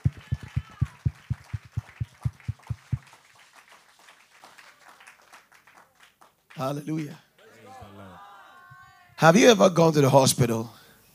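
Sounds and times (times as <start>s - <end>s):
audience clapping in quick steady rhythm: 0.0s - 6.8s
speech: 6.6s - 7.2s, 9.2s - 10.8s.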